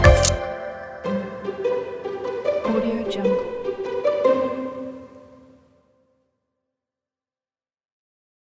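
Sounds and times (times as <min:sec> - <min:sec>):
uplifting music: 0:00.0 - 0:05.6.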